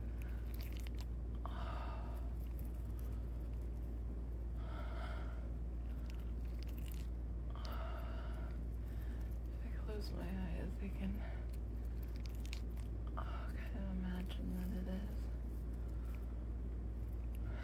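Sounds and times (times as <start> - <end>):
wet chewing of gum: 0.0 - 4.0, 5.8 - 9.6, 11.2 - 13.2
low hum: 0.0 - 17.6
speech: 10.8 - 11.4.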